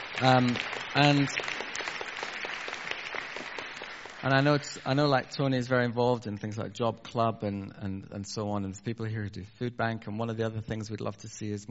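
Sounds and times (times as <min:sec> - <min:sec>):
audience applause: 0:00.0 - 0:05.3
speech: 0:00.2 - 0:01.6, 0:04.2 - 0:11.6.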